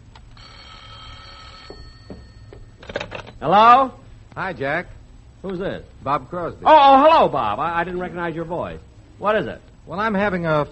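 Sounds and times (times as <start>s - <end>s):
telephone ringing: 0.3s - 3.3s
speech: 3.4s - 10.6s.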